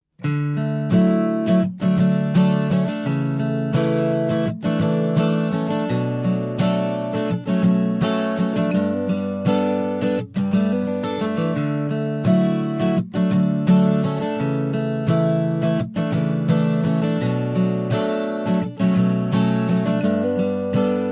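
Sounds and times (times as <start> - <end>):
guitar solo: 0.2 - 21.1.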